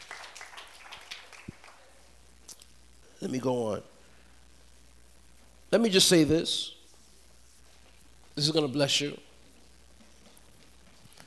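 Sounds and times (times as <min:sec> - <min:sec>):
audience clapping: 0:00.0 - 0:02.1
speech: 0:03.2 - 0:03.9, 0:05.7 - 0:06.8, 0:08.4 - 0:09.2.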